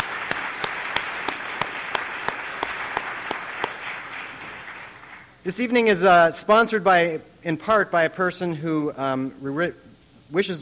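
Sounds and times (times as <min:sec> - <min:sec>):
audience applause: 0:00.0 - 0:05.4
speech: 0:05.4 - 0:10.6.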